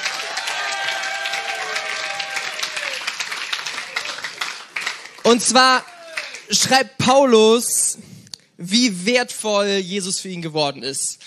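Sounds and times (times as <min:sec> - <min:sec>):
faint voices and cheers: 0:00.0 - 0:04.4
audience applause: 0:00.0 - 0:06.6
speech: 0:05.3 - 0:05.9, 0:06.5 - 0:08.0, 0:08.6 - 0:11.2.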